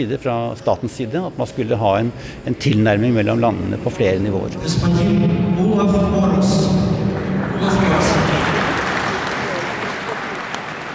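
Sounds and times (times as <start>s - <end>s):
speech: 0.0s - 6.2s
crowd applause at a medal ceremony: 7.1s - 10.9s.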